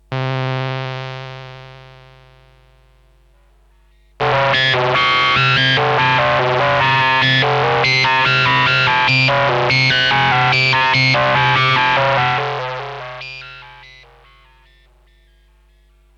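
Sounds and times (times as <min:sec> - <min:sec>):
ring modulated synth with step sequencer: 0:04.2 - 0:14.5.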